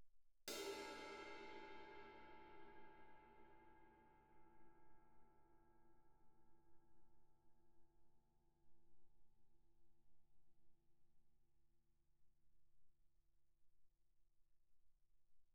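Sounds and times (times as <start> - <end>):
suspended cymbal crash struck with stick shoulder: 0.5 - 3.7.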